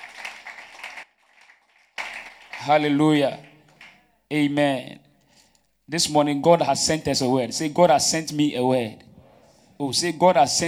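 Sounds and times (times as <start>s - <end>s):
audience clapping: 0.0s - 4.1s
speech: 2.6s - 3.4s, 4.3s - 5.0s, 5.9s - 9.1s, 9.8s - 10.6s.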